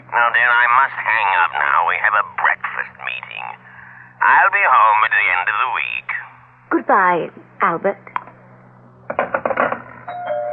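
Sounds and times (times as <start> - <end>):
speech: 0.1 - 8.2
doorbell ringing: 10.1 - 10.5.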